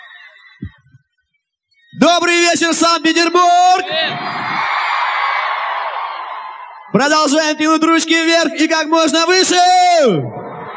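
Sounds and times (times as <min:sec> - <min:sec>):
concert crowd cheering loudly: 0:00.0 - 0:00.8, 0:03.0 - 0:10.7
speech: 0:02.0 - 0:04.7, 0:07.0 - 0:10.4.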